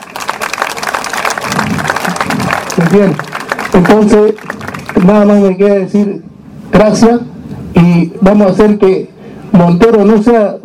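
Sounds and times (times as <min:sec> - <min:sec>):
audience applause for swimmers: 0:00.0 - 0:05.3
speech: 0:02.8 - 0:10.6.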